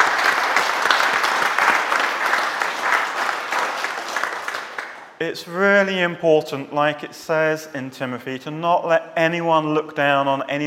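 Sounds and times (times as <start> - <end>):
audience applause: 0.0 - 5.2
speech: 5.2 - 10.6.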